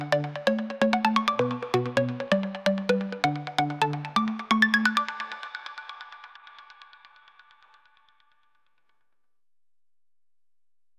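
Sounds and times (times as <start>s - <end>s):
techno music: 0.0s - 6.5s.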